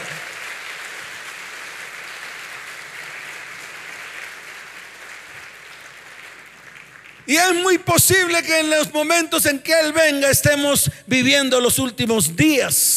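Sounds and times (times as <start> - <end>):
audience applause: 0.0 - 7.3
speech: 7.3 - 12.9.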